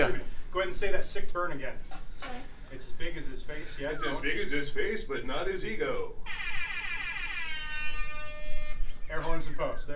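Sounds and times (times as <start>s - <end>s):
speech: 0.6s - 6.4s, 9.1s - 9.9s
air horn from a phone app: 6.3s - 9.0s.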